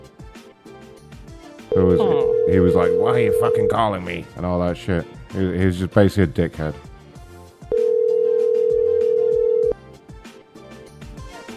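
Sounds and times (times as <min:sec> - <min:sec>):
telephone beep on a call going to voicemail: 0:01.7 - 0:03.8, 0:07.7 - 0:09.8
speech: 0:01.8 - 0:06.9.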